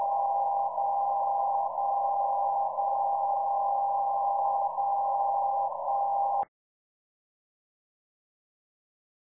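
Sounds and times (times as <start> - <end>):
77.5kHz DCF77 time signal transmitter in Mainflingen: 0.0 - 6.4.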